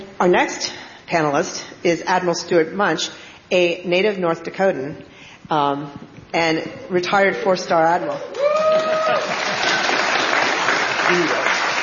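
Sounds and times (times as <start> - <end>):
speech: 0.2 - 8.4, 11.1 - 11.4
large audience applause: 8.3 - 11.8.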